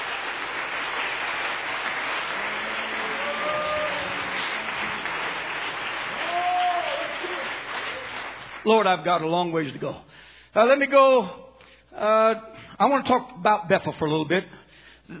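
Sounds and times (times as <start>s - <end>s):
audience clapping hands: 0.0s - 9.5s
speech: 8.6s - 15.1s.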